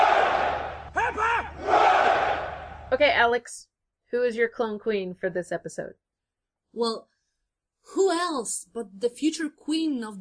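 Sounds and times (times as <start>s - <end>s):
crowd cheering for the Queen: 0.0s - 2.9s
person shouting: 1.0s - 1.6s
speech: 3.0s - 6.0s, 6.7s - 7.1s, 7.8s - 10.1s.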